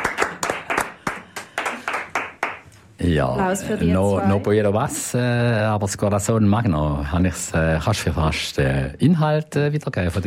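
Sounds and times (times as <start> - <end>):
applause: 0.0 - 2.7
speech: 3.0 - 10.2.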